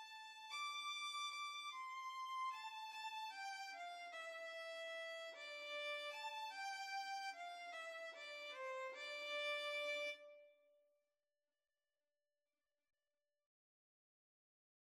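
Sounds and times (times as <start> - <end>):
violin and cello duet: 0.0 - 10.3.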